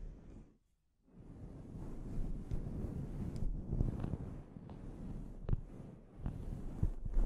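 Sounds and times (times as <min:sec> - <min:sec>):
scalp treatment rubbing and scratching: 0:01.8 - 0:07.2.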